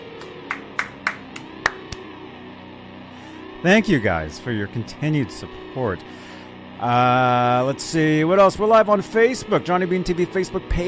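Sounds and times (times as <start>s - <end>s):
one person clapping hands as applause: 0.0s - 2.1s
speech: 3.6s - 10.8s.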